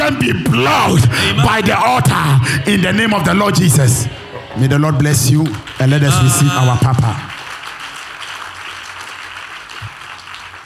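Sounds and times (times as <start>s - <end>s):
speech: 0.1s - 7.4s
audience clapping hands: 5.1s - 10.6s.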